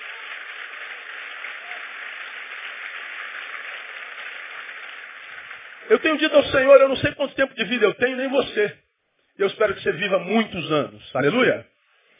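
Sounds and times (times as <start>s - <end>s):
audience applause: 0.0s - 7.0s
speech: 5.8s - 8.8s, 9.4s - 11.7s.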